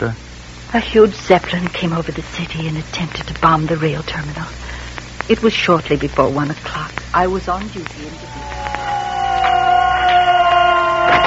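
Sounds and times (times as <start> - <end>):
speech: 0.0 - 4.7, 5.3 - 8.6
air raid sirens: 7.8 - 11.2.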